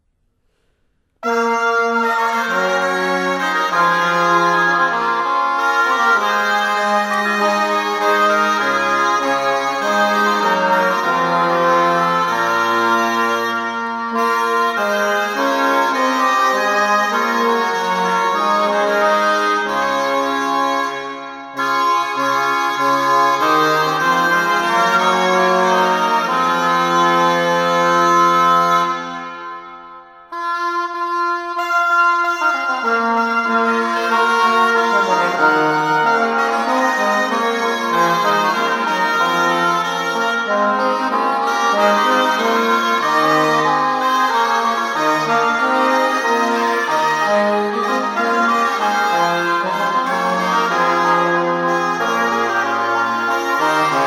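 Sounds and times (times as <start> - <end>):
instrumental ensemble playing: 1.2 - 29.8, 30.9 - 54.0.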